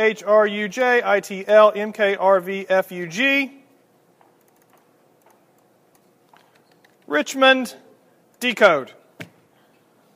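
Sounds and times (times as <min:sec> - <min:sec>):
speech: 0:00.0 - 0:03.6, 0:07.1 - 0:07.8, 0:08.4 - 0:09.0
faint computer keyboard typing: 0:04.2 - 0:07.1.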